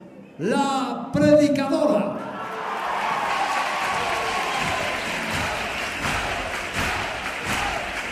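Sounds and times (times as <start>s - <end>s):
speech: 0.4s - 2.3s
applause: 2.6s - 8.0s.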